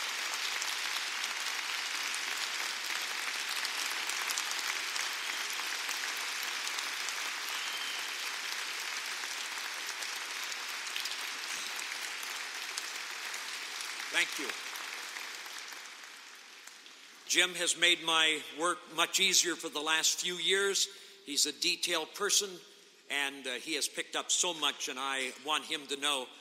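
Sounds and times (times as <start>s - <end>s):
audience applause: 0.0s - 16.9s
speech: 14.2s - 14.6s, 17.3s - 26.3s.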